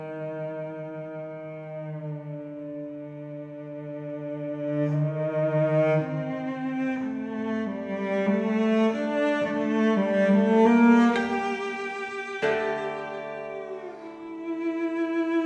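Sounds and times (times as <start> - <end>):
cello: 0.0 - 15.4
koto: 5.8 - 15.4.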